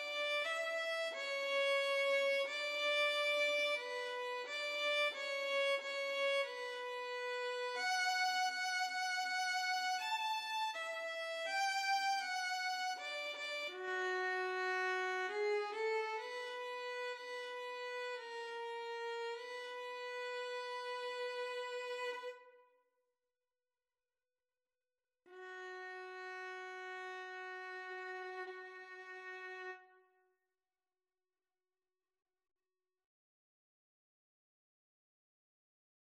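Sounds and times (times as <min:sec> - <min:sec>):
violin pavane: 0:00.0 - 0:22.6, 0:25.3 - 0:30.0.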